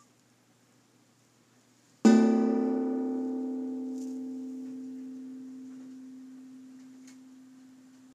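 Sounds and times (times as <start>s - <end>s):
gong: 2.1s - 8.1s.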